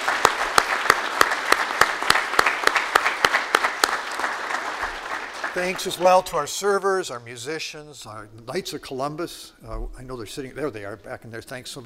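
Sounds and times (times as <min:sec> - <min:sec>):
audience applause: 0:00.0 - 0:06.5
speech: 0:05.6 - 0:11.8.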